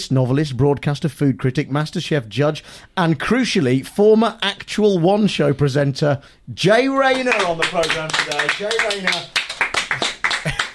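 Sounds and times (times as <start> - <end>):
speech: 0.0 - 10.6
sparse applause: 7.0 - 10.7.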